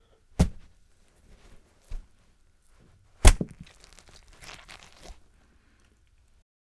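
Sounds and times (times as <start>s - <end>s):
cantaloupe punched and mushed: 0.4s - 2.2s, 2.8s - 5.4s.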